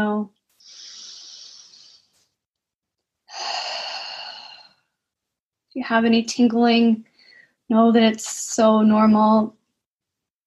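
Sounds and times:
breathing in through the nose and out through the mouth: 0.6 - 2.3, 3.3 - 4.9, 7.1 - 7.7
speech: 5.8 - 7.1, 7.7 - 9.6.

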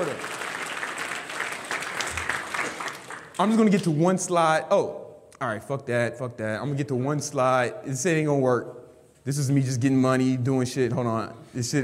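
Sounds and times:
audience applause: 0.0 - 3.9
speech: 3.4 - 11.8.

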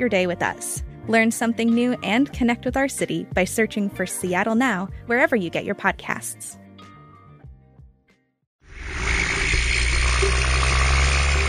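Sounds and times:
speech: 0.0 - 6.6
logging trucks rumbling, heard underwater: 8.7 - 11.4.

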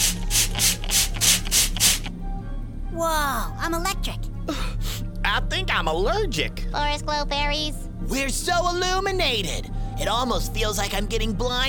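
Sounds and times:
spray being sprayed: 0.0 - 2.1
speech: 3.0 - 4.6, 5.4 - 11.6.

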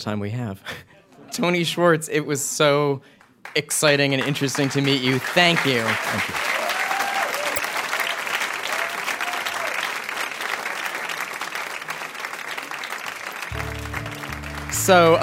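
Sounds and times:
speech: 0.0 - 6.5, 14.9 - 15.2
live audience applause: 4.0 - 15.2.

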